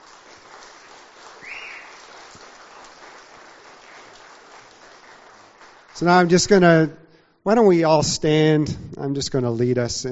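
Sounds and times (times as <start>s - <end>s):
audience applause: 0.0s - 6.5s
speech: 6.0s - 10.0s.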